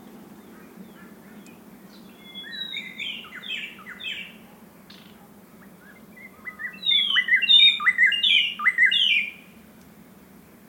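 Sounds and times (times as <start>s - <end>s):
White-browed Robin Chat singing in the Okavango Panhandle: 0.4s - 5.2s, 5.8s - 9.5s.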